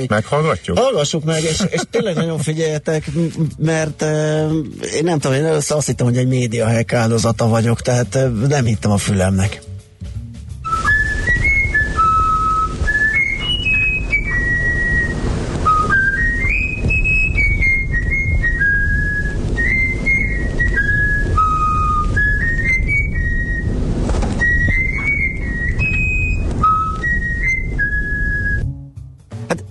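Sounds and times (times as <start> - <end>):
speech: 0.0 - 9.7
laughter: 1.3 - 2.6
small songbird whistling a learned tune: 10.6 - 28.7
low rumble: 10.6 - 29.0.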